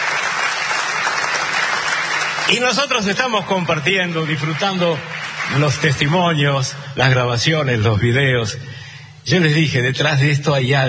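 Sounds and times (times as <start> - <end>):
audience applause: 0.0 - 6.7
speech: 2.5 - 10.8.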